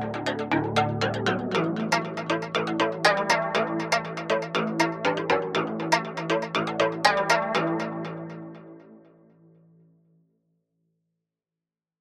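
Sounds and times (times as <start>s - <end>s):
world instruments playing: 0.0s - 8.4s.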